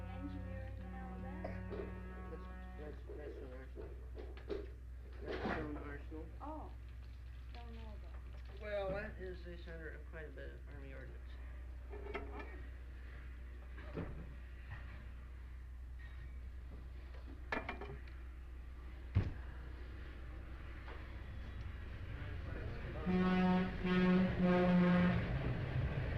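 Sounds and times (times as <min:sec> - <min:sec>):
speech: 0:01.4 - 0:02.1, 0:02.8 - 0:06.8, 0:07.5 - 0:12.7
passing trains: 0:18.8 - 0:26.1.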